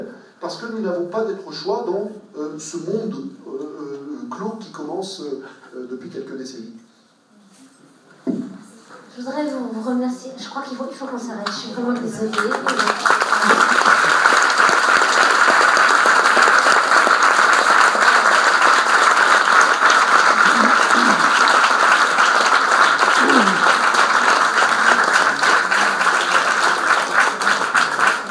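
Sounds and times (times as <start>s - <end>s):
speech: 0.5s - 3.7s, 4.4s - 6.8s, 9.2s - 13.1s
audience applause: 11.4s - 28.2s.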